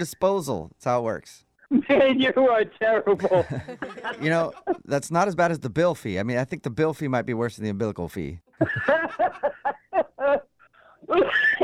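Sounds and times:
speech: 0:00.0 - 0:10.5, 0:11.1 - 0:11.6
laughter: 0:03.1 - 0:04.9, 0:08.5 - 0:10.5, 0:11.1 - 0:11.6
harsh coughs and hacking: 0:11.1 - 0:11.6.

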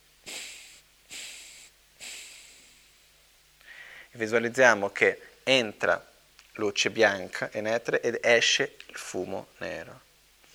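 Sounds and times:
breathing through one nostril during Buddhist meditation preparation: 0:00.2 - 0:04.2
speech: 0:04.1 - 0:10.1.

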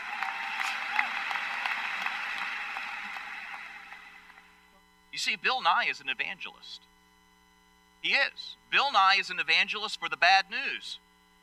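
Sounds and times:
audience clapping: 0:00.0 - 0:04.6
speech: 0:05.2 - 0:07.0, 0:08.0 - 0:11.1.

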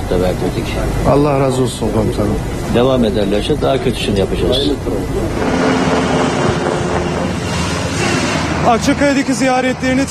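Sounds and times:
helicopters departing: 0:00.0 - 0:10.0
speech: 0:00.1 - 0:05.8, 0:08.7 - 0:10.0.

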